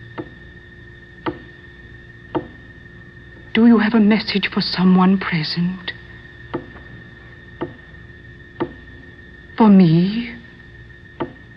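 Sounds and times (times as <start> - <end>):
faint steady hum: 0.0 - 11.5
knocking in reply at a séance: 1.2 - 1.5, 2.3 - 2.6, 6.5 - 6.9, 7.6 - 7.8, 8.6 - 8.8
speech: 3.6 - 6.0, 9.6 - 10.3.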